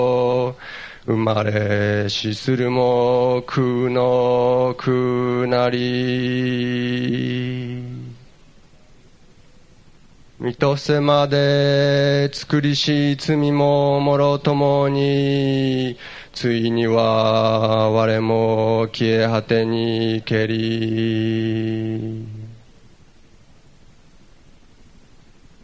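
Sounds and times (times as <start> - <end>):
chanting: 0.0 - 8.2, 10.4 - 22.6.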